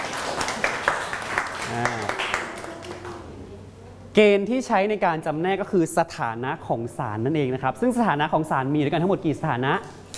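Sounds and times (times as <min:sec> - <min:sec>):
classroom group clapping: 0:00.0 - 0:03.4
speech: 0:01.7 - 0:02.1, 0:04.2 - 0:10.0.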